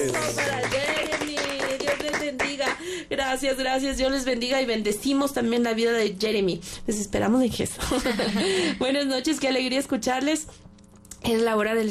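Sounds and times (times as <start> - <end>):
speech: 0.0 - 0.8, 3.2 - 10.6, 11.3 - 11.8
crowd clapping: 0.0 - 2.8.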